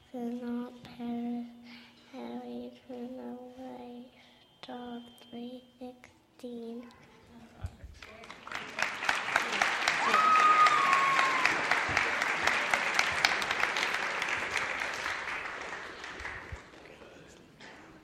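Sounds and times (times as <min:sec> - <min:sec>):
speech: 0:00.1 - 0:00.6
audience applause: 0:08.0 - 0:17.1.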